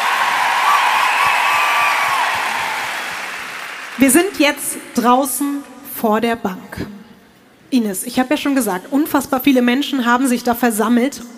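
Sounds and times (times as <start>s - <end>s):
crowd cheering with whoops and shouts: 0.0s - 4.5s
speech: 4.0s - 7.0s, 7.7s - 11.3s.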